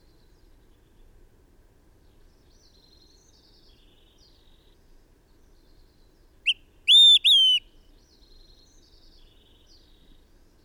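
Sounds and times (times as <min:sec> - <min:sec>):
bird song with whistles: 0:06.5 - 0:07.7.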